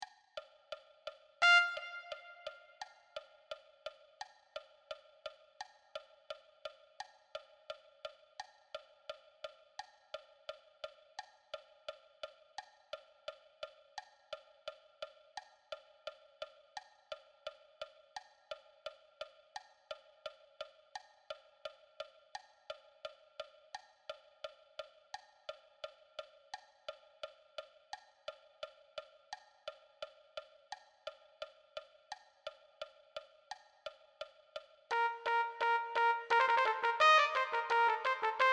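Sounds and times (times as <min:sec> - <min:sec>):
trumpet: 0:01.4 - 0:02.8, 0:34.9 - 0:38.5.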